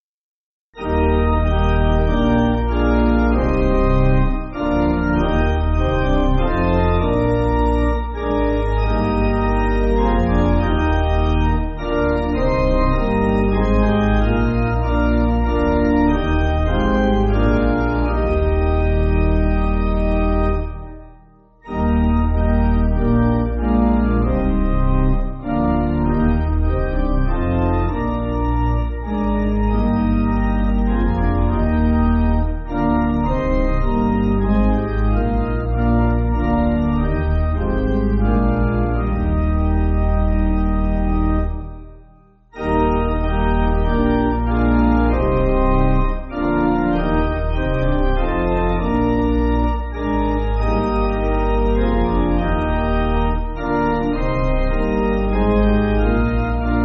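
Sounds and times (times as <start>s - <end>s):
pipe organ church backing music: 0.8s - 56.8s.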